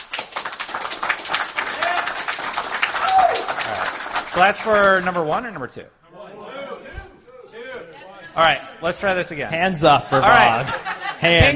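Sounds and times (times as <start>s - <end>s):
audience clapping: 0.0s - 5.8s
speech: 4.4s - 6.0s, 8.4s - 11.5s
laughter: 9.9s - 11.5s.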